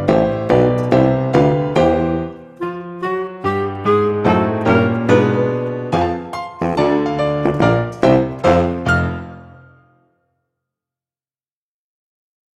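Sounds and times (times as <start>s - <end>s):
karaoke player piano: 0.0s - 9.7s.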